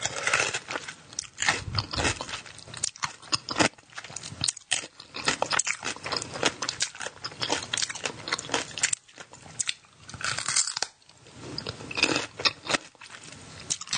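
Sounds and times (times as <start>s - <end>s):
woman crunching pickled cucumbers from a jar: 0.0s - 13.9s.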